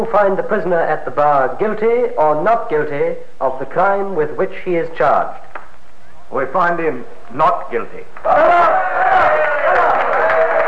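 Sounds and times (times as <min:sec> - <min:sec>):
speech: 0:00.0 - 0:05.6, 0:06.3 - 0:09.0
courtroom crowd cheering after verdict: 0:08.2 - 0:10.6.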